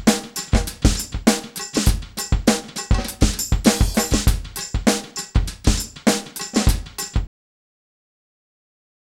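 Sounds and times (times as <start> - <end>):
salsa music: 0.0 - 5.4.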